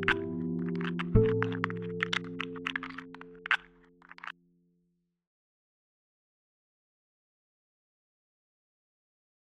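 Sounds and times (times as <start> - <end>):
guitar: 0.0 - 4.3.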